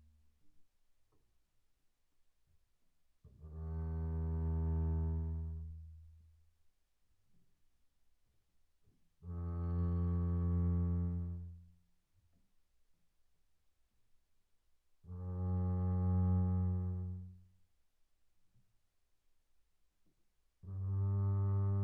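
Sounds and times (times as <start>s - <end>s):
double bass bowed arco on the E string, pianissimo: 3.3s - 6.1s, 9.2s - 11.7s, 15.1s - 17.5s, 20.6s - 21.8s.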